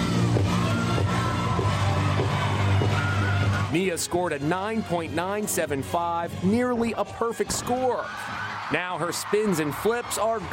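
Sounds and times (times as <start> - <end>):
crowd cheering and whooping: 0.0 - 3.7, 7.7 - 10.5
speech: 3.8 - 10.5.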